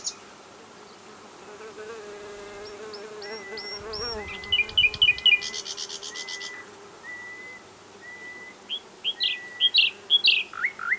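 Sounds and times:
common nightingale singing: 2.7 - 10.9.

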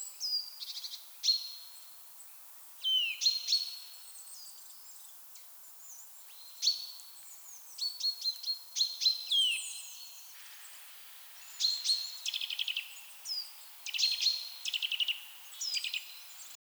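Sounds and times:
Eurasian nuthatch calls: 6.0 - 16.6.

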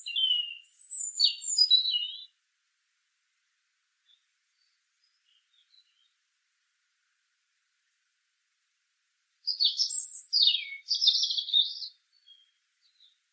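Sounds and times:
European robin singing, Erithacus rubecula: 0.0 - 2.4, 4.0 - 6.2, 9.1 - 13.3.

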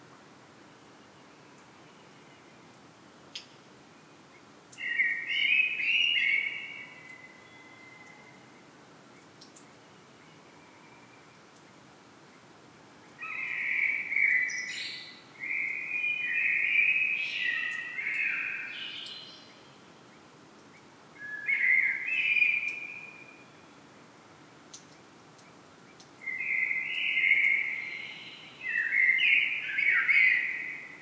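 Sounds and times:
faint click: 2.7 - 3.6, 24.2 - 26.2
common blackbird song: 4.8 - 8.2, 13.2 - 19.5, 21.2 - 23.2, 26.2 - 31.0.

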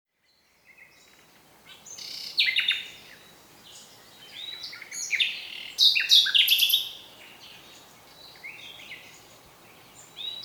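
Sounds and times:
common nightingale Luscinia megarhynchos song: 0.2 - 10.4.

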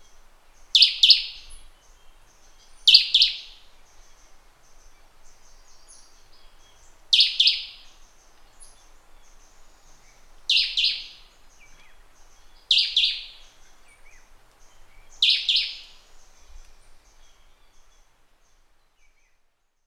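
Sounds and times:
low hiss: 0.0 - 19.8
other birds chirping: 5.3 - 18.0.

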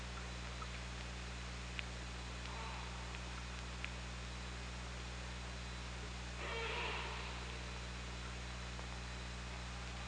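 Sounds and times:
steady hum: 0.0 - 10.0
killer whale pulsed call: 6.4 - 7.6.

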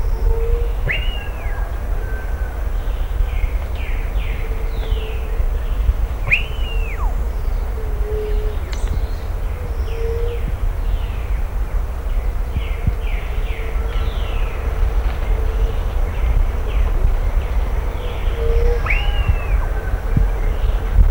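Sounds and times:
low rumble: 0.0 - 21.0
bird whistling: 0.8 - 1.6, 6.3 - 10.4, 18.2 - 19.9.

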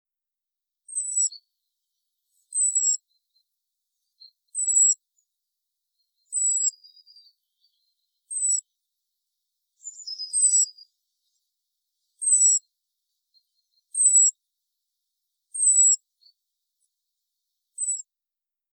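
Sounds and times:
European robin calling: 0.9 - 1.5, 2.4 - 3.2, 4.0 - 5.0, 6.2 - 8.7, 9.8 - 11.4, 12.2 - 12.6, 13.6 - 14.3, 15.5 - 16.0, 17.8 - 18.1.

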